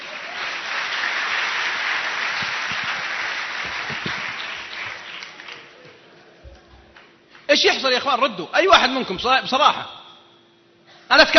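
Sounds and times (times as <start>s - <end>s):
audience applause for a sheikh at a religious gathering: 0.0s - 7.5s
speech: 7.5s - 10.0s, 11.1s - 11.3s.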